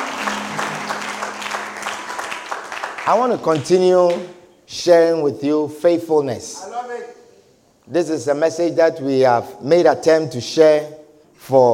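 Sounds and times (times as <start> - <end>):
church congregation clapping after a prayer: 0.0 - 4.5
speech: 3.1 - 7.2, 7.9 - 11.7.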